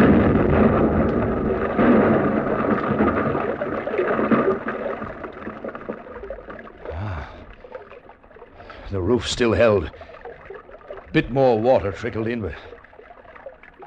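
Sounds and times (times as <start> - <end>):
mining explosive charge detonating in tunnel: 0.0 - 5.0
speech: 9.2 - 10.1, 11.1 - 12.7.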